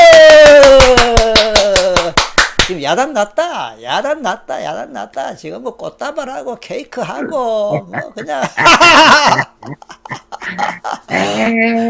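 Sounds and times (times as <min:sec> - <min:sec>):
applause: 0:00.0 - 0:02.8
speech: 0:02.9 - 0:11.8
laughter: 0:07.1 - 0:11.6.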